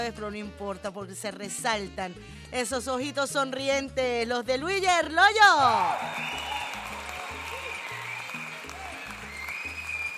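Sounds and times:
speech: 0:00.0 - 0:06.6
applause: 0:05.6 - 0:10.1.

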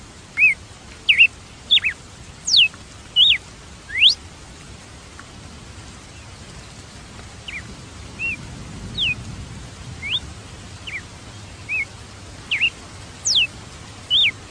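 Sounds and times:
red-cowled cardinal singing high whistled phrases: 0:00.4 - 0:04.2, 0:08.2 - 0:08.4, 0:09.0 - 0:09.2, 0:10.0 - 0:10.2, 0:11.7 - 0:11.9, 0:12.5 - 0:13.5, 0:14.1 - 0:14.4.

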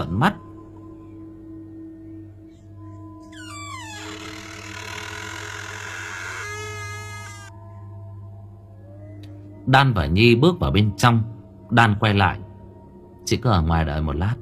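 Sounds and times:
speech: 0:00.1 - 0:00.4, 0:09.7 - 0:12.4, 0:13.3 - 0:14.4
door creaking slowly open: 0:03.3 - 0:07.5.

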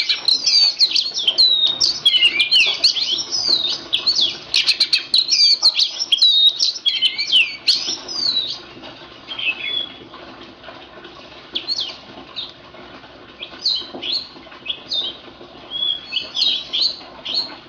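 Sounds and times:
Oriental magpie-robin song with whistles and trills: 0:00.0 - 0:08.6, 0:09.3 - 0:10.0, 0:13.4 - 0:17.6.

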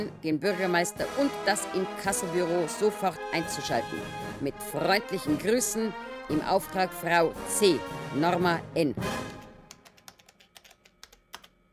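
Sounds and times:
speech: 0:00.0 - 0:09.3
typing documents for a lawyer: 0:09.4 - 0:11.7.

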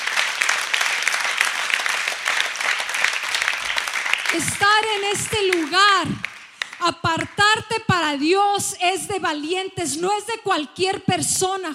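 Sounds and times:
church congregation applause during a service: 0:00.0 - 0:07.3
speech: 0:04.3 - 0:11.7.

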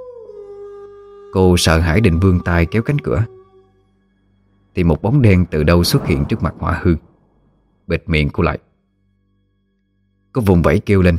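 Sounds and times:
wolf howling: 0:00.0 - 0:03.7
speech: 0:01.3 - 0:03.4, 0:04.8 - 0:07.1, 0:07.9 - 0:08.7, 0:10.3 - 0:11.1.

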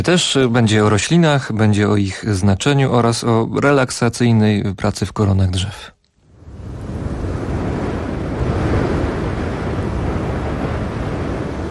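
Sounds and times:
speech: 0:00.0 - 0:06.0
wind sweeping over the snowy icy desert of Spitsbergen in northern Norway: 0:06.2 - 0:11.6.

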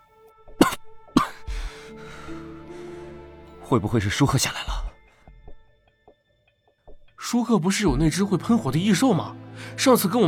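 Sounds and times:
person coughing after holding breath: 0:00.6 - 0:01.6
speech: 0:03.7 - 0:04.8, 0:07.3 - 0:10.2.

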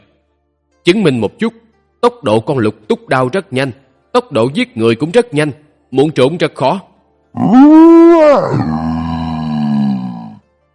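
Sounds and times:
speech: 0:00.8 - 0:09.0
monster's ear-piercing roar: 0:07.4 - 0:10.4.

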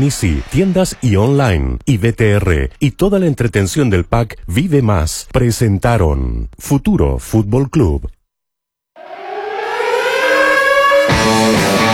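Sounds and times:
speech: 0:00.0 - 0:08.2
alarm siren sound effect: 0:09.0 - 0:11.9.

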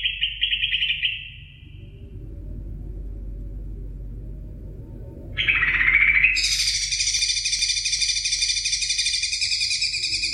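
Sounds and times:
Oriental magpie-robin song: 0:00.0 - 0:01.6, 0:05.4 - 0:10.3.

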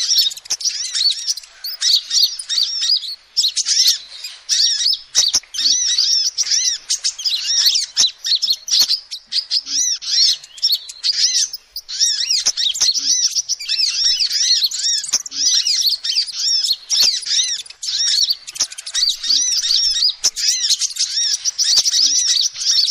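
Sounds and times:
lovebirds shrill chattering: 0:00.0 - 0:22.8.

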